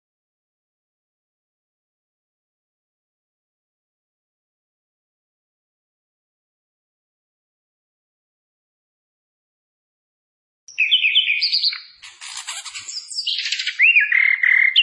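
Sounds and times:
Hill blue flycatcher singing: 10.7 - 14.8.

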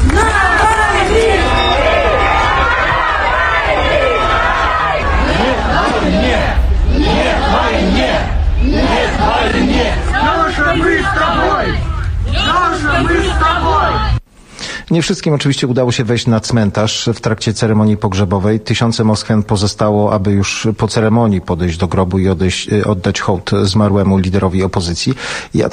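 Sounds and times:
crowd chanting slogans at funeral: 0.0 - 14.2
speech: 14.9 - 25.7.

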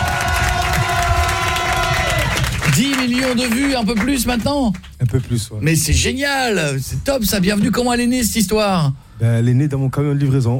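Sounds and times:
audience cheering and applauding to welcome a young singer: 0.0 - 4.9
speech: 2.8 - 10.5.

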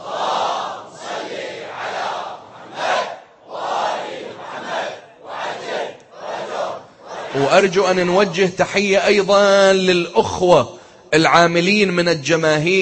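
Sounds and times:
large crowd chanting salawat blessings in unison: 0.0 - 7.6
speech: 7.4 - 12.8.

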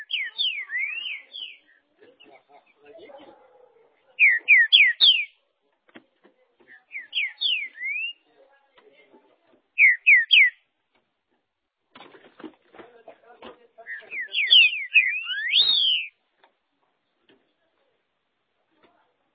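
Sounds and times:
green-winged saltator whistling song: 0.0 - 1.8, 4.2 - 5.4, 6.7 - 8.2, 9.8 - 10.6, 13.8 - 16.2.

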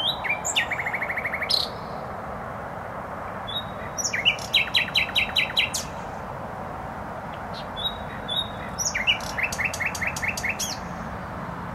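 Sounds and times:
nightingale singing: 0.0 - 2.0, 3.4 - 6.2, 7.3 - 11.4
traffic noise: 0.0 - 11.7.

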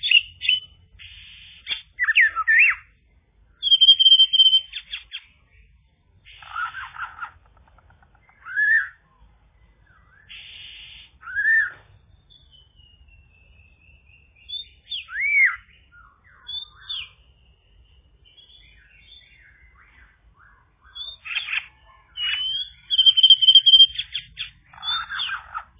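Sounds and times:
bird singing whistles, chirps and trills: 0.0 - 7.4, 8.1 - 25.7.

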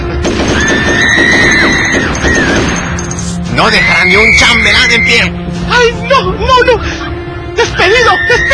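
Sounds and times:
machine gun fire: 0.2 - 3.0
speech: 4.1 - 8.5.

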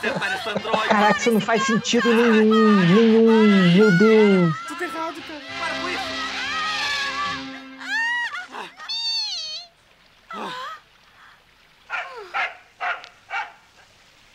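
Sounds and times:
speech: 0.0 - 5.4
laughter: 0.0 - 9.2
dog barking: 11.9 - 13.7.

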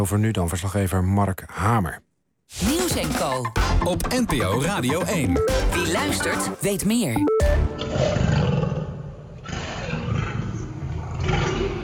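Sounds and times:
speech: 0.0 - 8.4
Barbary lion roaring: 7.8 - 11.8.

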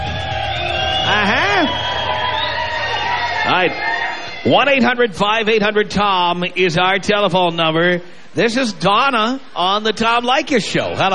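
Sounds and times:
rowdy crowd cheering at an outdoor party: 0.0 - 7.5, 8.8 - 11.1
speech: 3.5 - 11.1.

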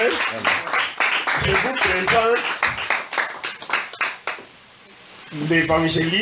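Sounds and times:
church congregation clapping loudly for the Lord: 0.0 - 4.5
speech: 0.3 - 0.7, 1.4 - 3.0, 5.3 - 6.1.

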